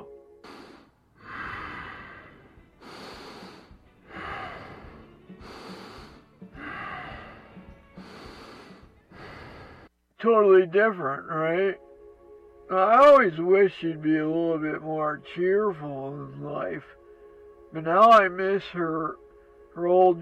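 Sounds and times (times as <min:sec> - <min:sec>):
sleeping animal breathing: 0:00.4 - 0:09.9
speech: 0:10.2 - 0:11.8, 0:12.7 - 0:17.0, 0:17.7 - 0:19.2, 0:19.8 - 0:20.2.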